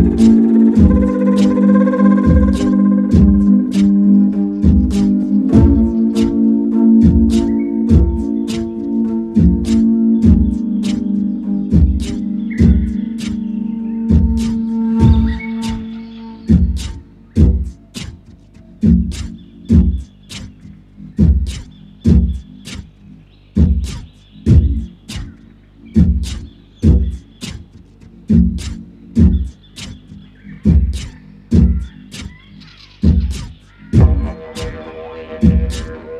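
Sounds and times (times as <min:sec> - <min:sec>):
live didgeridoo playing: 0:00.0 - 0:22.8, 0:23.6 - 0:36.1
morning ambience: 0:00.0 - 0:36.1.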